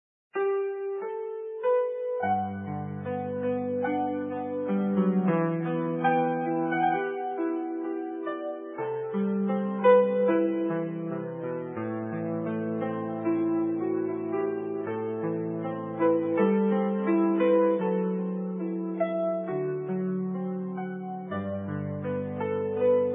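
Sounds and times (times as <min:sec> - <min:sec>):
piano: 0:00.3 - 0:23.1.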